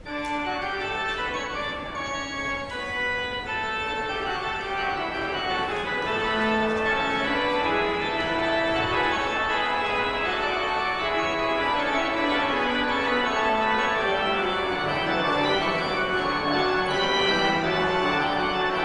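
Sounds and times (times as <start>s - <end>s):
postlude: 0.0s - 18.8s.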